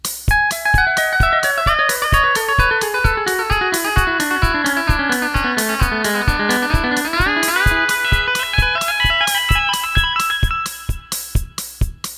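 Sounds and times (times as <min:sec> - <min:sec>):
fast echo effect: 0:00.3 - 0:12.0.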